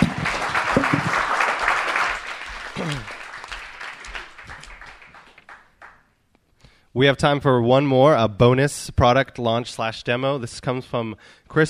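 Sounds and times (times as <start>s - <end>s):
audience round of applause: 0.0s - 6.0s
speech: 7.0s - 11.6s.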